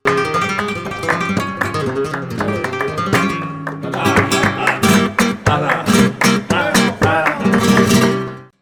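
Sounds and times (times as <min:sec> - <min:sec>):
flamenco falseta: 0:00.0 - 0:08.6
laughter: 0:03.9 - 0:07.7.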